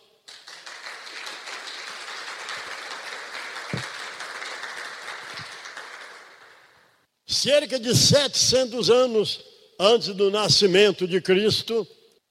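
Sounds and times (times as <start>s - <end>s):
applause: 0.0s - 7.0s
speech: 7.4s - 12.0s.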